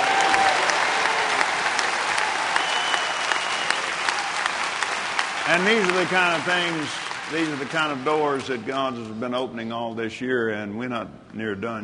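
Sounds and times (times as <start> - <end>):
audience applauding: 0.0 - 9.0
speech: 5.5 - 11.8.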